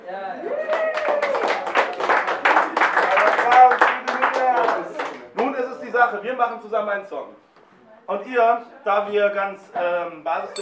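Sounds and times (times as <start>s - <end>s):
crowd applauding: 0.6s - 5.4s
speech: 6.1s - 7.4s, 8.1s - 10.5s.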